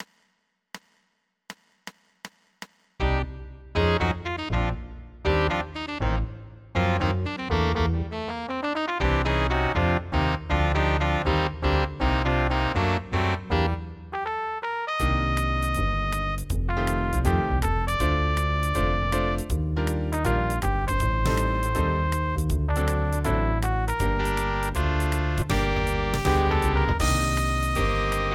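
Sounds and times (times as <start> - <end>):
instrumental septet in G minor: 3.0 - 28.3.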